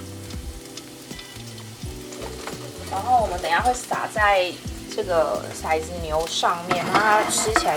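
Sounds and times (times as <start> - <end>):
garlic frying in hot oil: 0.0 - 7.7
speech: 2.9 - 7.7.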